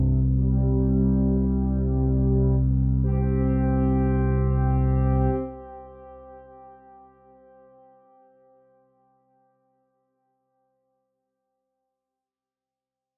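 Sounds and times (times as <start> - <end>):
organ: 0.1 - 6.5.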